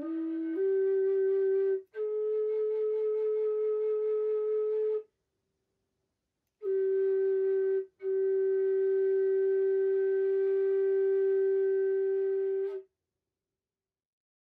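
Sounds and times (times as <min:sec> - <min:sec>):
bamboo nose flute playing: 0:00.0 - 0:05.1, 0:06.6 - 0:12.8.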